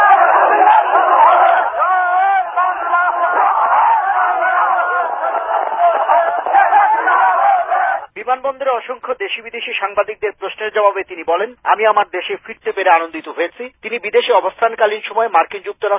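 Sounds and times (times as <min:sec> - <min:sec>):
thousands of party activists and supporters chanting slogans in a street procession: 0:00.0 - 0:08.1
speech: 0:08.5 - 0:15.9.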